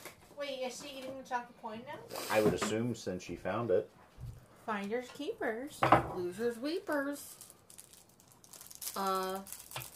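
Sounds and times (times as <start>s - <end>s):
speech: 0.6s - 4.0s, 4.7s - 7.5s, 9.0s - 9.9s
foil wrapper of a chocolate coin crinkling as it is cut open: 6.7s - 9.9s.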